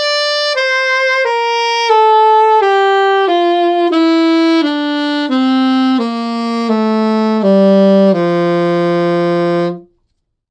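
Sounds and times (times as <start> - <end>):
alto saxophone: 0.0 - 10.0.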